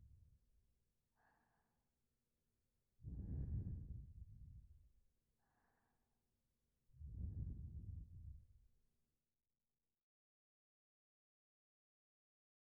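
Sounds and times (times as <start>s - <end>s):
sleeping breath: 3.1s - 4.6s, 7.0s - 8.4s.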